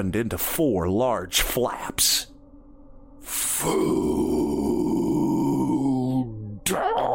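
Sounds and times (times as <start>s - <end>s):
speech: 0.0s - 2.3s, 3.2s - 4.4s, 6.7s - 7.1s
monster growling: 3.3s - 7.1s.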